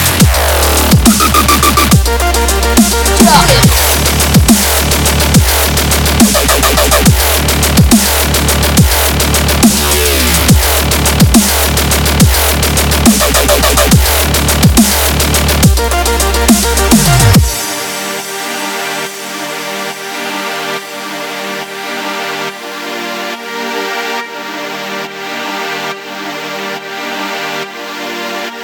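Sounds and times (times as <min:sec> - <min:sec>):
wobble bass: 0:00.0 - 0:17.8.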